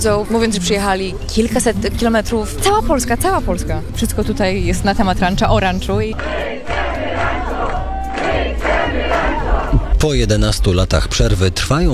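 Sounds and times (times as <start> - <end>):
speech: 0.0 - 6.8, 10.0 - 11.9
large crowd of fans singing and chanting: 0.0 - 10.2
occasional shouts: 6.2 - 10.0.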